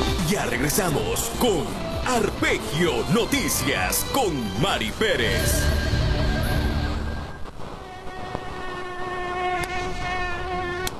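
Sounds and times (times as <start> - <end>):
speech: 0.4 - 5.9
mosquitoes buzzing: 5.6 - 10.9.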